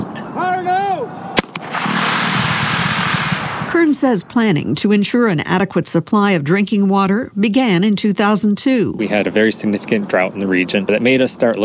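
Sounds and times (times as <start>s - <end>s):
rock blasting explosion for pipeline: 1.4s - 4.6s
speech: 3.8s - 11.6s.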